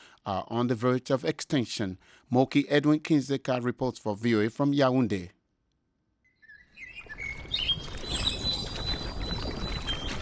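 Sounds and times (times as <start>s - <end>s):
speech: 0.2s - 5.4s
birds singing in an evening park in Yaoundé: 6.2s - 10.2s.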